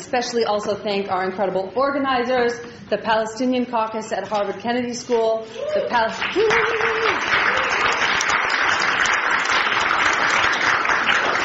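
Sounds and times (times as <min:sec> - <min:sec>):
speech: 0:00.1 - 0:07.3
audience applause for organizers at a Harvard Kennedy School event: 0:06.2 - 0:11.4.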